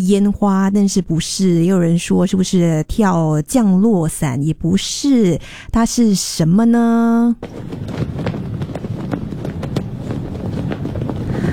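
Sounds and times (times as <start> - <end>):
speech: 0.0 - 8.2
flag flapping in strong wind: 7.3 - 11.5
strong wind gusting: 7.4 - 11.5.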